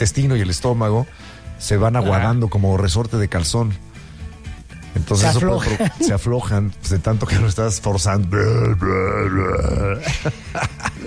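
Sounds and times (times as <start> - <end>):
speech: 0.0 - 3.9, 5.0 - 11.0
laughter: 5.3 - 6.2, 9.8 - 11.0
long loud deep burp forced out with effort: 8.3 - 10.1.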